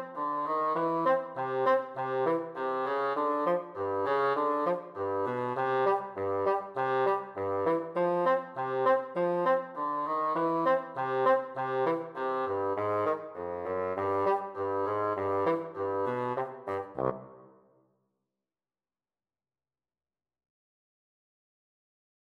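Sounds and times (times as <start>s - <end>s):
clarinet playing a ragtime piece in a duet: 0.0s - 17.5s.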